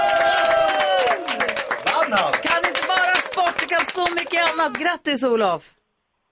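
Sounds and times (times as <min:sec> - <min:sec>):
studio cheering and applause: 0:00.0 - 0:05.0
speech: 0:04.3 - 0:05.8.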